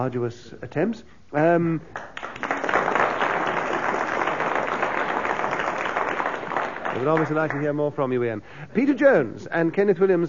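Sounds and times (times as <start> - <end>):
speech: 0.0 - 2.5, 7.0 - 10.2
audience applauding: 2.0 - 7.9.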